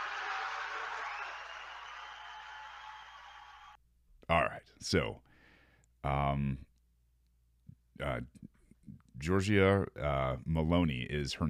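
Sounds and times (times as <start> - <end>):
crowd applauding: 0.0 - 3.8
speech: 4.3 - 5.2, 6.0 - 6.7, 8.0 - 8.5, 9.2 - 11.4.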